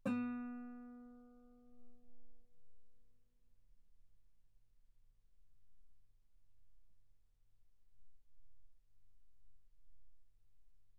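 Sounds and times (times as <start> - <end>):
guitar note B3: 0.0 - 1.5.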